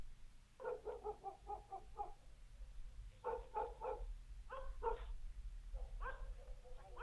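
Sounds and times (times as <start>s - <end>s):
dogs barking: 0.6s - 2.2s, 3.2s - 5.2s, 5.8s - 7.0s.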